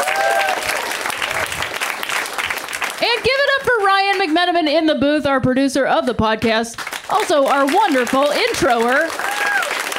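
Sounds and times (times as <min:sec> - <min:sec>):
audience applause: 0:00.0 - 0:03.2, 0:06.8 - 0:09.9
speech: 0:03.1 - 0:09.3.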